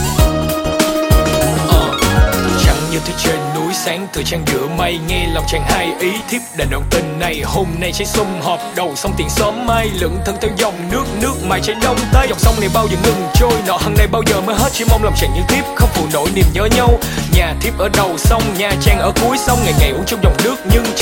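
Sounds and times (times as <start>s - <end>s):
rap ringtone: 1.1s - 21.0s
laughter: 1.2s - 3.2s.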